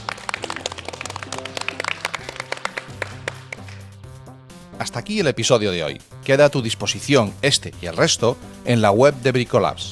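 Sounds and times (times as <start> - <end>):
applause: 0.0 - 4.0
speech: 4.8 - 9.9.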